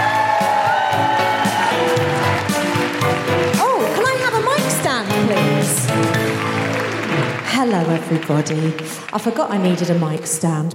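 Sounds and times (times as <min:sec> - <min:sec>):
audience applause: 0:00.0 - 0:10.4
audience cheering: 0:00.0 - 0:10.4
speech: 0:07.6 - 0:10.7.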